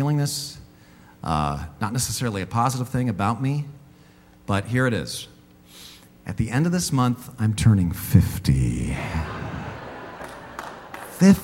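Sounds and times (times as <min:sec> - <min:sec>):
speech: 0:00.1 - 0:00.6, 0:01.2 - 0:03.8, 0:04.5 - 0:05.3, 0:06.3 - 0:09.5, 0:11.2 - 0:11.4
laughter: 0:08.9 - 0:11.4
audience applause: 0:09.6 - 0:11.4.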